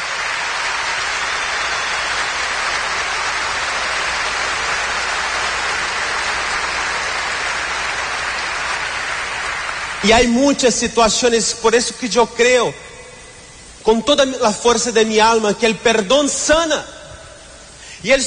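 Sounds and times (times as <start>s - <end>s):
audience applauding: 0.0s - 10.3s
speech: 10.1s - 12.9s, 13.9s - 17.0s, 18.0s - 18.2s.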